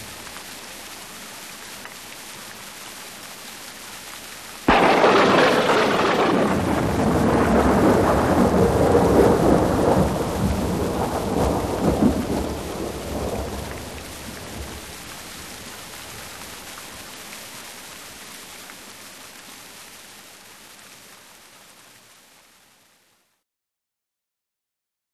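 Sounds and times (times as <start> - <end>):
rain: 0.0 - 23.4.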